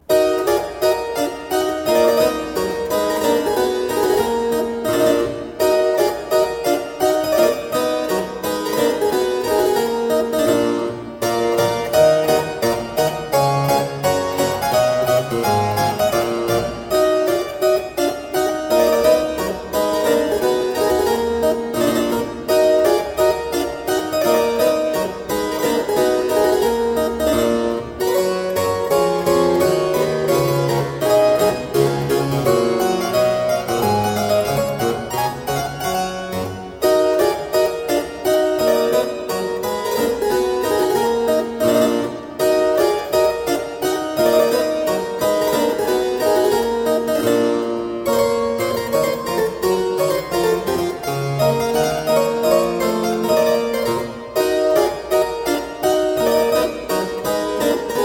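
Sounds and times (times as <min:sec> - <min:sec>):
keyboard gavotte in E minor: 0:00.0 - 0:58.0.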